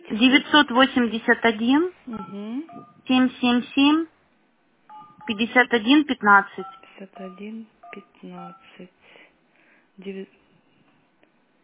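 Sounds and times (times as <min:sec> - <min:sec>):
speech: 0:00.1 - 0:04.1, 0:05.3 - 0:09.0, 0:10.0 - 0:10.4
phone keypad dialing tones: 0:02.2 - 0:03.0, 0:04.9 - 0:05.6, 0:06.6 - 0:08.8.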